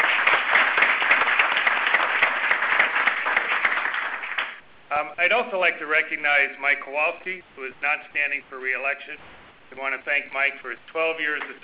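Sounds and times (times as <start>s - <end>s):
audience applause: 0.0s - 4.6s
speech: 5.0s - 11.6s.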